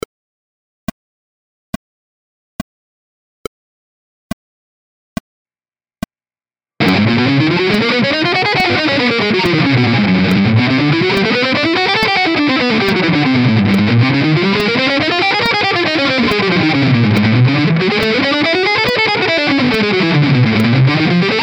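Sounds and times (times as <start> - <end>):
scales with rhythmic variation: 6.8 - 21.4.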